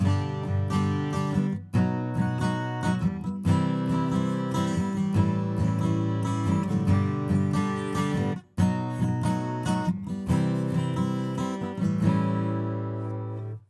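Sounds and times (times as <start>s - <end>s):
acoustic music: 0.0s - 13.6s.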